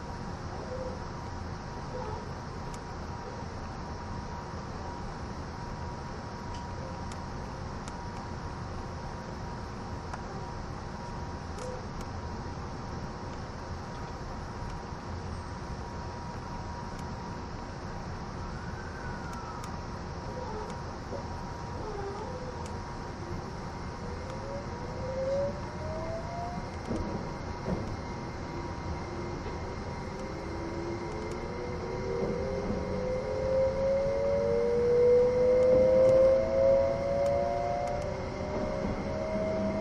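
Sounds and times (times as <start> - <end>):
E261 series Saphir Odoriko No. 1 train rumble: 0.0 - 39.8
E261 series Saphir Odoriko No. 1 train motor whine: 18.4 - 39.8.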